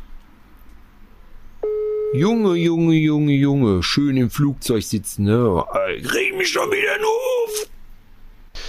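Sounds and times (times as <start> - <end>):
telephone busy signal: 1.6 - 2.2
speech: 2.1 - 7.8.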